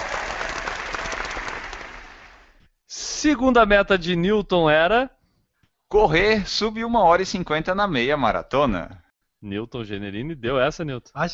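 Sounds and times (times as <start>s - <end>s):
applause: 0.0s - 2.6s
speech: 3.2s - 5.2s, 5.9s - 11.3s.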